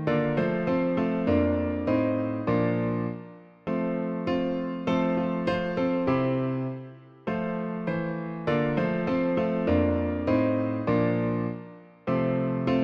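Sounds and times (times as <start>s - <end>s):
hymn played on piano: 0.0s - 12.8s.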